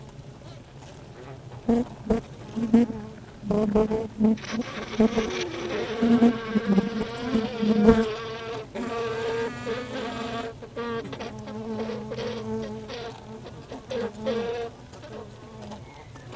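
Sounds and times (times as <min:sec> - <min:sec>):
speech: 0:01.7 - 0:06.9
honey bees humming in a hive: 0:04.3 - 0:14.8
faint crackling movements: 0:04.3 - 0:15.3.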